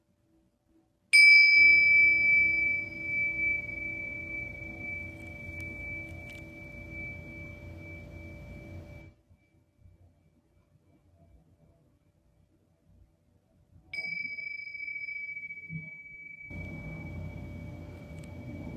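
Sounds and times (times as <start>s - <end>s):
singing bowl struck and ringing: 1.2s - 9.2s, 14.0s - 18.7s
low rumbling hum: 1.8s - 9.1s, 16.5s - 18.7s.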